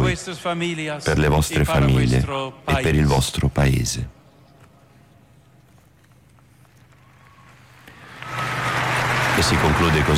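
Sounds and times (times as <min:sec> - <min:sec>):
speech: 0:00.2 - 0:04.2, 0:09.4 - 0:10.1
joyful applause from crowd in a square: 0:07.2 - 0:10.1.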